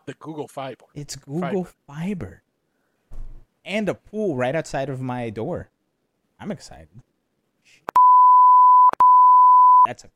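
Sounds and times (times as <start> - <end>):
speech: 0.1 - 2.4, 3.6 - 5.7, 6.4 - 7.1, 9.8 - 10.1
censorship bleep: 7.9 - 9.9.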